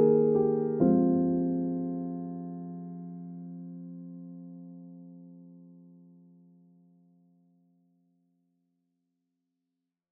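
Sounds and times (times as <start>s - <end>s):
clean piano: 0.0s - 7.4s.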